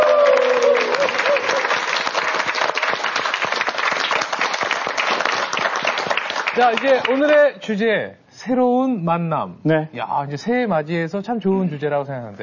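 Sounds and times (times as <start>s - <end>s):
audience applauding: 0.0s - 7.4s
speech: 6.6s - 12.4s.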